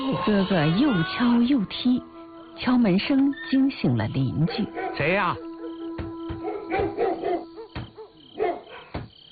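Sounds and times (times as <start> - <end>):
speech: 0.1 - 5.5
dog barking: 4.4 - 5.8, 6.4 - 9.0.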